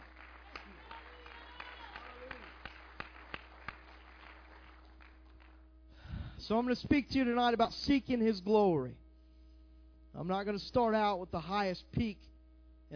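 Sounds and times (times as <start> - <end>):
scattered hand claps from an audience: 0.0 - 5.6
steady low hum: 0.0 - 12.9
speech: 6.5 - 9.0, 10.2 - 12.3.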